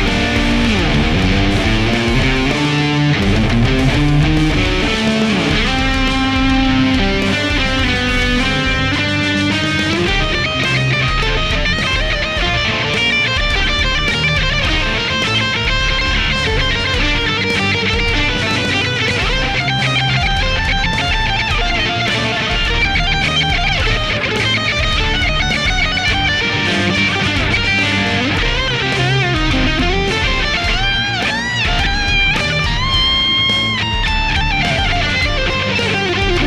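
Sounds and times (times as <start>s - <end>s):
electric guitar through amp simulation software: 0.0s - 36.4s.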